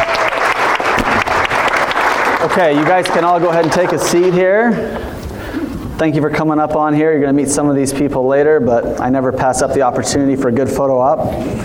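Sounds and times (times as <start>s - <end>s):
audience applause: 0.0s - 4.4s
speech: 2.5s - 5.2s, 6.0s - 11.6s.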